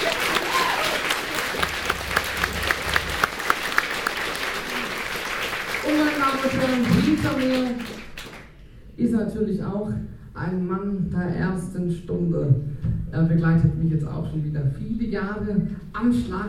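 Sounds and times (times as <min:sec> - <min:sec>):
audience applause: 0:00.0 - 0:08.5
speech: 0:06.6 - 0:08.0, 0:09.0 - 0:16.4.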